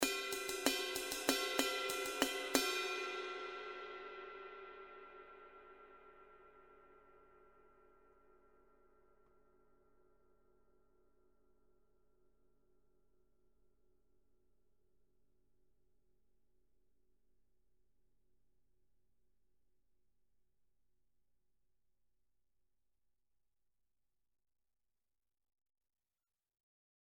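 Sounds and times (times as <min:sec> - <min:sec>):
Zildjian cymbal: 0:00.0 - 0:09.3.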